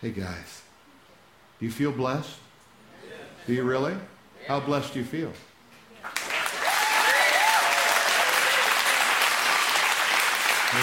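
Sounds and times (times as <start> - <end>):
speech: 0.0 - 0.7, 1.6 - 2.5, 3.4 - 6.2
audience clapping: 6.0 - 10.8.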